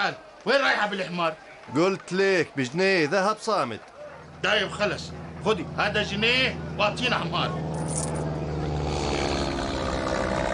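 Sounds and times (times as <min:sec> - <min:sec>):
speech: 0:00.0 - 0:08.2
airplane flying overhead: 0:04.2 - 0:10.5.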